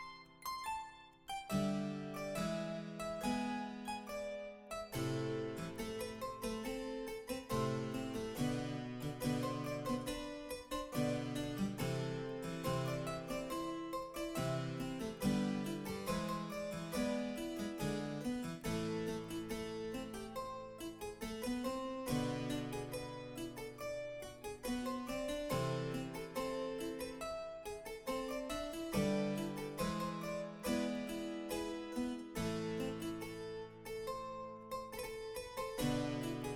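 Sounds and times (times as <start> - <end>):
solo harpsichord chaconne and fantasia: 0.0 - 36.5.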